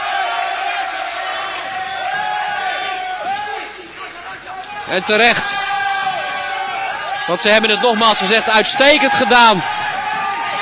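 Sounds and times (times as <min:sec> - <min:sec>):
stadium crowd cheering: 0:00.0 - 0:10.6
speech: 0:04.9 - 0:05.6, 0:07.3 - 0:09.8.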